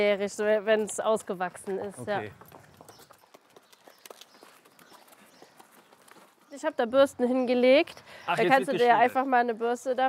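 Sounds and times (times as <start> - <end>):
speech: 0.0 - 2.6, 6.6 - 10.0
horse hooves walking while being led: 0.0 - 10.0.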